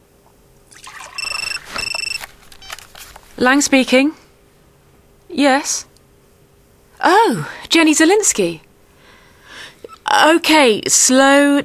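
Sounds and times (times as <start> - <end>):
water pouring into a cup for tea: 0.7 - 2.0
high warbling electronic phone ring: 0.9 - 2.8
speech: 3.4 - 4.2, 5.4 - 5.9, 7.0 - 8.6, 10.1 - 11.6.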